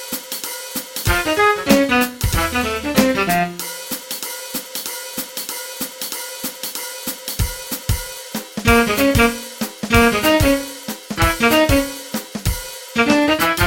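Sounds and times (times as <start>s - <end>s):
boogie beat: 1.0s - 4.0s, 7.3s - 13.6s.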